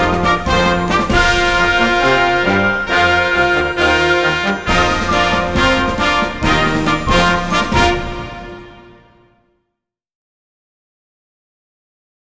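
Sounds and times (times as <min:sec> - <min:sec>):
fanfare: 0:00.0 - 0:09.4.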